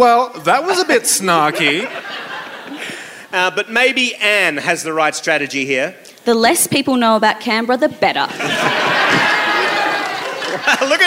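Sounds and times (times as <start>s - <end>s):
speech: 0.0s - 2.3s, 3.3s - 8.4s, 10.6s - 11.0s
laughter: 0.6s - 3.2s, 8.3s - 11.0s
crowd cheering: 8.3s - 11.0s.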